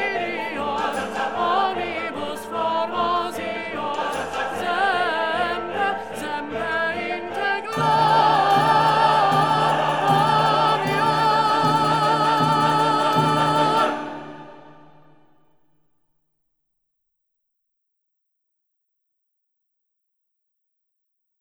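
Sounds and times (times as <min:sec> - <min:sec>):
choir tenor singing: 0:00.0 - 0:15.3.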